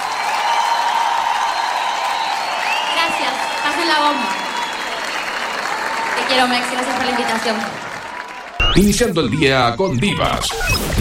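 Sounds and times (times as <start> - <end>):
audience applause during a live radio morning show: 0.0 - 9.1
speech: 6.3 - 7.8, 8.7 - 10.9.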